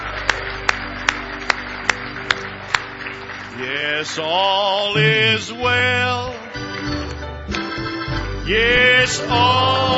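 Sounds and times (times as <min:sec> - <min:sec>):
audience clapping hands in praise in unison: 0:00.0 - 0:07.2
speech: 0:03.6 - 0:07.0, 0:08.5 - 0:09.9
low sustained droning tone: 0:05.0 - 0:05.9.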